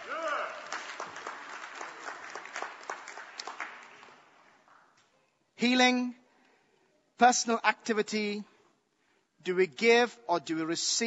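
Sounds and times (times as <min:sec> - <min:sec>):
audience applause: 0:00.0 - 0:04.8
speech: 0:05.6 - 0:06.2, 0:07.2 - 0:08.5, 0:09.4 - 0:11.0.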